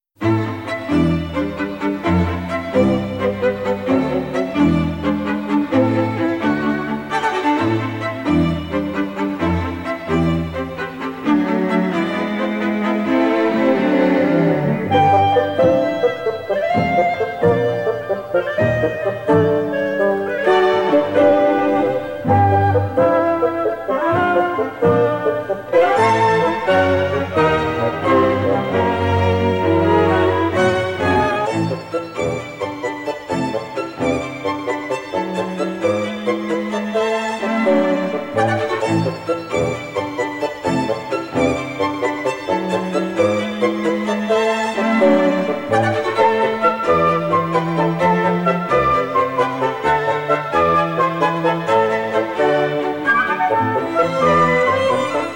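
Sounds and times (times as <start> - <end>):
strings: 0.2 - 55.3.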